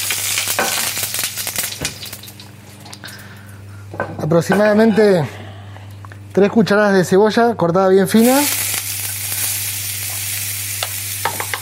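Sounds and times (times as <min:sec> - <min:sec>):
olive oil sizzling in a frying pan for risotto: 0:00.0 - 0:02.6, 0:08.2 - 0:11.5
speech: 0:04.0 - 0:05.4, 0:06.4 - 0:08.6.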